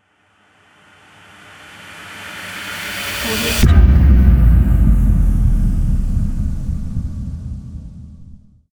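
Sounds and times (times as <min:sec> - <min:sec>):
air boom: 0:02.9 - 0:08.6.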